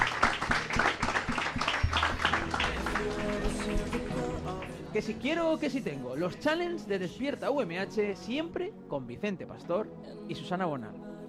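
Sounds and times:
audience applause: 0:00.0 - 0:04.8
speech: 0:05.0 - 0:11.2.

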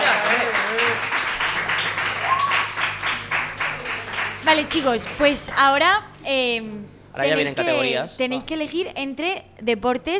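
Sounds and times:
applause: 0:00.0 - 0:05.3
speech: 0:04.5 - 0:10.1.

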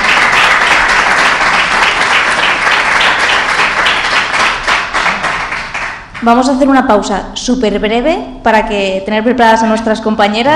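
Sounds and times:
crowd applause: 0:00.0 - 0:06.2
speech: 0:06.2 - 0:10.5.

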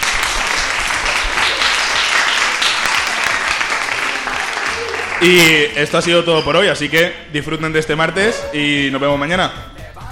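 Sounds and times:
audience applause: 0:00.0 - 0:05.5
speech: 0:05.2 - 0:09.7.

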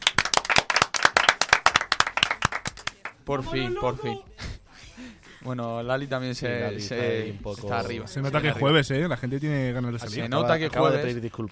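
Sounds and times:
audience applause: 0:00.0 - 0:03.2
speech: 0:03.2 - 0:04.5, 0:05.4 - 0:11.4.

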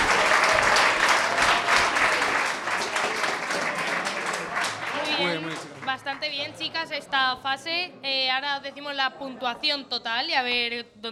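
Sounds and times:
audience applause: 0:00.0 - 0:06.4
speech: 0:06.0 - 0:11.1.

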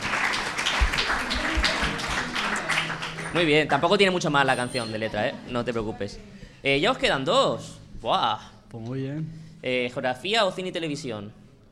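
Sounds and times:
small group clapping: 0:00.0 - 0:04.2
speech: 0:03.3 - 0:11.4.

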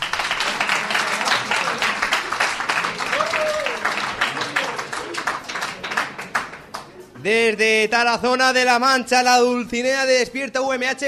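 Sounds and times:
audience applause: 0:00.0 - 0:06.9
speech: 0:07.2 - 0:11.0.

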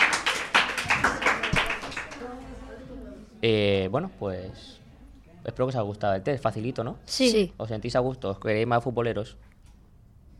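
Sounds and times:
people clapping: 0:00.0 - 0:02.5
speech: 0:03.4 - 0:04.8, 0:05.4 - 0:09.5.

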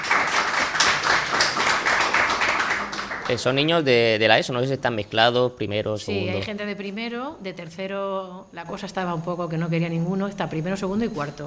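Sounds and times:
crowd clapping: 0:00.0 - 0:04.0
speech: 0:03.3 - 0:11.4.

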